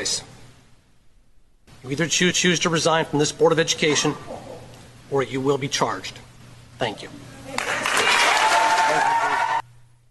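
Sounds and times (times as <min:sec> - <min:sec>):
speech: 0:00.0 - 0:00.3, 0:01.8 - 0:04.5, 0:05.1 - 0:07.3
audience applause: 0:07.5 - 0:09.6.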